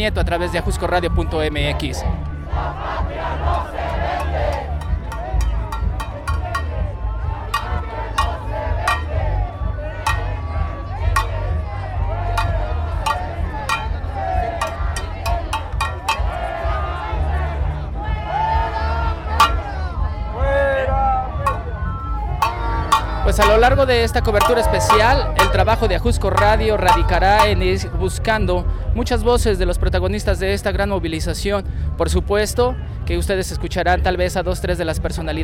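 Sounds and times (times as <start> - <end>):
speech: 0.0 - 4.5, 23.3 - 35.4
protest march crowd chanting against Enrique Peña Nieto: 1.7 - 27.8
sharp percussive hits: 3.6 - 16.6, 19.3 - 20.0, 21.3 - 27.9.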